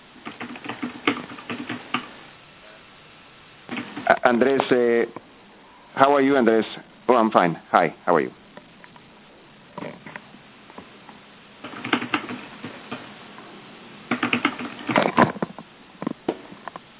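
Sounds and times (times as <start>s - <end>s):
typing a message on a computer keyboard: 0.2s - 2.2s, 3.7s - 4.3s, 11.6s - 13.1s, 14.1s - 15.2s
speech: 4.1s - 5.2s, 6.0s - 8.4s.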